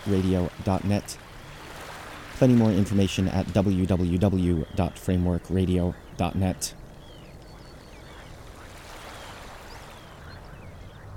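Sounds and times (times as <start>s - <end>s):
speech: 0.0s - 1.3s, 2.4s - 6.8s
breeze through leafy birch trees: 0.0s - 11.1s
faint thin bird chirps: 3.8s - 11.1s.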